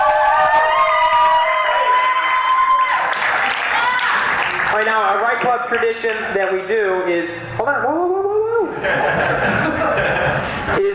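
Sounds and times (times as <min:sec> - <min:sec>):
crowd whoops and shouts: 0:00.0 - 0:04.4
crowd applause: 0:00.0 - 0:04.8
speech: 0:05.5 - 0:08.2, 0:08.8 - 0:10.9
laughter: 0:08.7 - 0:10.8.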